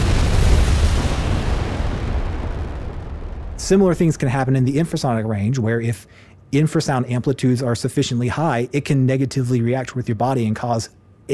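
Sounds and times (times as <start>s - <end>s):
rocket engines roaring at liftoff: 0.0s - 5.5s
speech: 3.7s - 11.3s.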